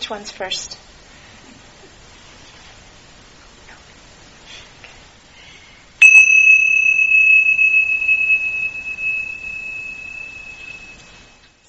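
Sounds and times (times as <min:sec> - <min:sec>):
speech: 0:00.1 - 0:01.0
single bell struck, high ringing tone: 0:06.0 - 0:11.6.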